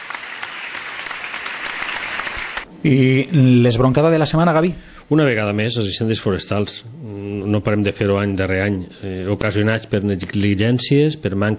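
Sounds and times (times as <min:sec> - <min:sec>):
audience applause: 0:00.0 - 0:02.6
speech: 0:02.8 - 0:11.5.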